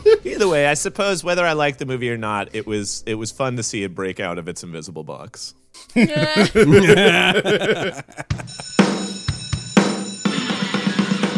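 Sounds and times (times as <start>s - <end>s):
speech: 0.4s - 9.0s
laughter: 6.0s - 8.7s
class bell ringing: 8.4s - 10.6s.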